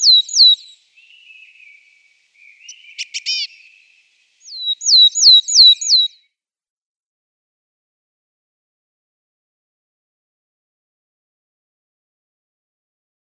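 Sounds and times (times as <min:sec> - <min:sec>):
willow tit song of pure descending whistles: 0:00.0 - 0:06.3.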